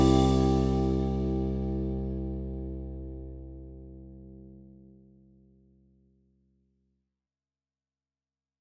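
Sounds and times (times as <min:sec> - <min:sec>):
backing track music in the key of C: 0:00.0 - 0:02.6.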